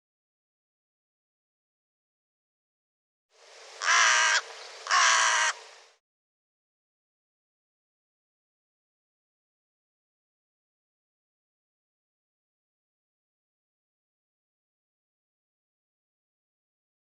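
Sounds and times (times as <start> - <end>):
harsh bird caws: 3.8 - 5.6.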